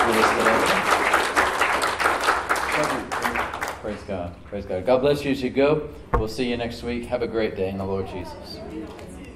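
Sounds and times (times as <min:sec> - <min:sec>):
church congregation applause after a guest's sermon: 0:00.0 - 0:04.0
speech: 0:04.2 - 0:09.2.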